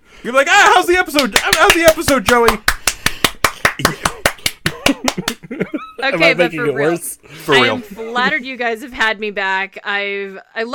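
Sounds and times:
speech: 0.2s - 2.7s, 3.8s - 4.1s, 4.9s - 10.7s
hand claps: 0.9s - 5.6s
laughter: 3.5s - 8.5s.

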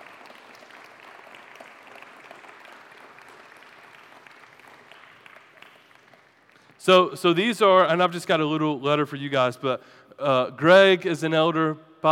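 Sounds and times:
audience clapping for church elders: 0.0s - 7.4s
speech: 6.8s - 12.1s.

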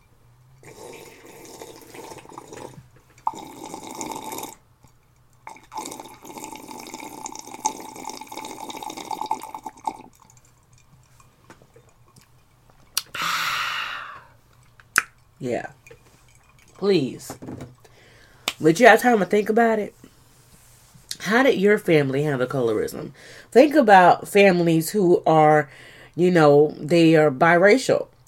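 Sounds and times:
person sipping tea: 0.6s - 4.6s, 5.5s - 10.9s
sharp breathy exhale: 13.1s - 14.4s, 17.9s - 18.5s
speech: 15.4s - 15.8s, 16.8s - 17.6s, 18.6s - 20.0s, 21.3s - 28.1s.

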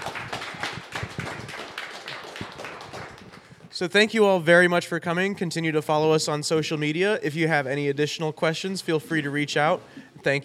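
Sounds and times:
audience round of applause: 0.0s - 3.7s
speech: 3.8s - 10.4s.

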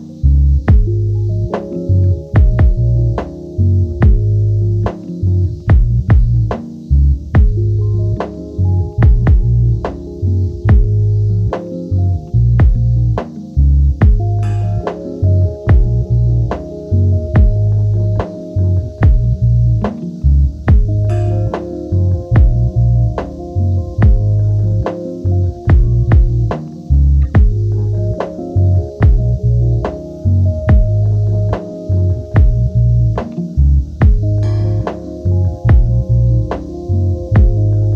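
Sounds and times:
electronic music loop with deep thumping bass line: 0.0s - 37.9s
faint hiss: 0.0s - 37.9s.

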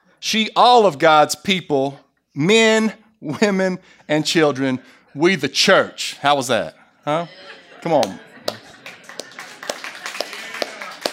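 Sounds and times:
speech: 0.2s - 8.6s
laughter: 4.4s - 11.1s
audience clapping: 7.9s - 11.1s.

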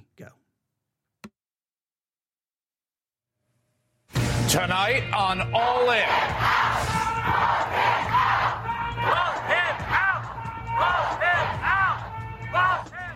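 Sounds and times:
speech: 0.2s - 0.4s, 4.5s - 7.6s
crowd shouting and chanting at a protest: 5.6s - 13.1s.

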